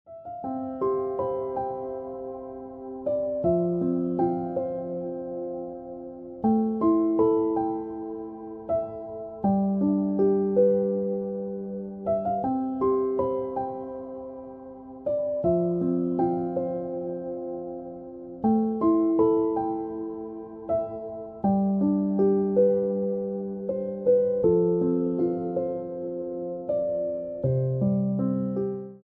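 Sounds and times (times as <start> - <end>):
piano music: 0.1 - 29.0.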